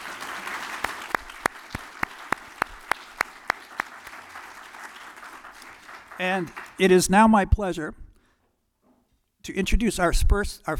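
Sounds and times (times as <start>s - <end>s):
round of applause: 0.0s - 7.0s
speech: 6.2s - 8.0s, 9.5s - 10.7s.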